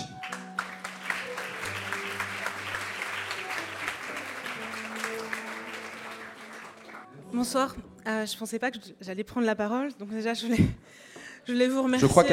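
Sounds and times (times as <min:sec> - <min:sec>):
audience applause: 0:00.0 - 0:07.3
speech: 0:07.3 - 0:12.3.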